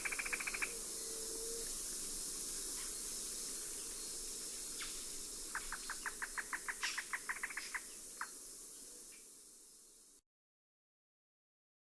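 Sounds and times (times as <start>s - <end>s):
Trogon melanocephalus: 0.0s - 1.7s, 4.8s - 8.3s.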